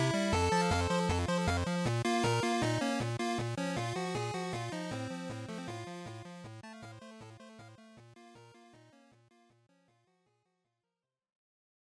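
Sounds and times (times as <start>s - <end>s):
Game Boy RPG battle music: 0.0s - 7.8s.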